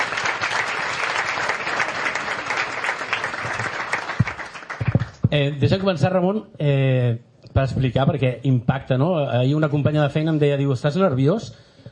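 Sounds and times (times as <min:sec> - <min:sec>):
audience applause: 0:00.0 - 0:05.9
speech: 0:05.4 - 0:11.6.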